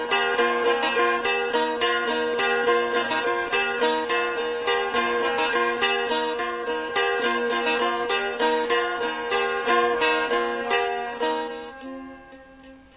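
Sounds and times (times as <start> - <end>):
Lao instrumental Khmu epic folksong: 0.0 - 12.9.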